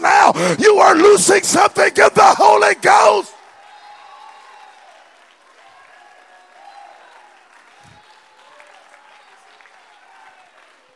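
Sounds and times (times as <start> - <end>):
speech: 0.3 - 3.4
audience clapping: 2.9 - 10.9.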